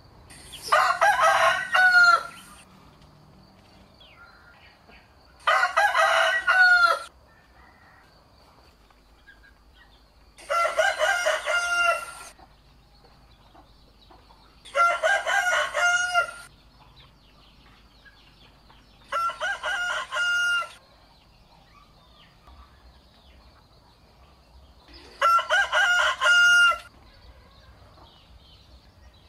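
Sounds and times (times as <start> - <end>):
rooster crowing: 0.6 - 2.6, 5.4 - 8.2, 10.4 - 12.4, 14.7 - 16.5, 19.1 - 20.8, 25.0 - 27.8.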